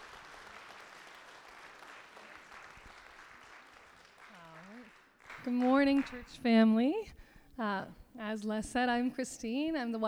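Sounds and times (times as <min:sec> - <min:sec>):
audience applause: 0:00.0 - 0:06.4
speech: 0:05.4 - 0:10.0.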